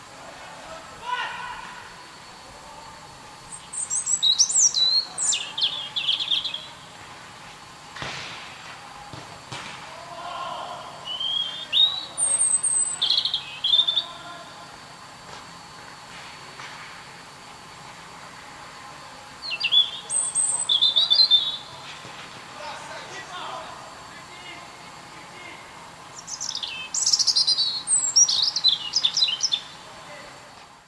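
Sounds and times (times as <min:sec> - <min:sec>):
faint background hiss: 0:00.0 - 0:30.8
European robin song with trills and sliding whistles: 0:03.5 - 0:06.9, 0:11.0 - 0:14.3, 0:19.4 - 0:21.8, 0:26.2 - 0:29.8.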